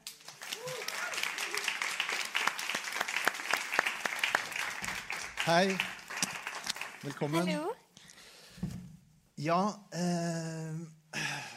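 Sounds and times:
audience applause: 0.0s - 7.4s
speech: 5.5s - 6.0s, 7.0s - 7.8s, 9.4s - 11.0s.

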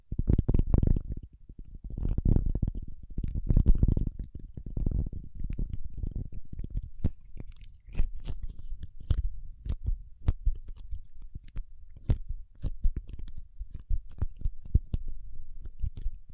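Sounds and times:
soft scratching: 0.2s - 16.3s
sharp crisp taps and clicks on paraffin wax: 2.0s - 16.3s
paraffin wax being handled with muffled rubbing and peeling: 5.6s - 16.3s.

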